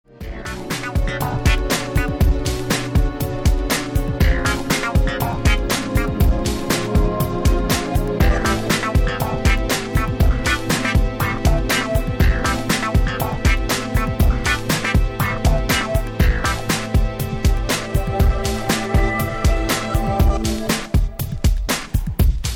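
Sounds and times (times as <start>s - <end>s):
funk music: 0.1s - 22.5s.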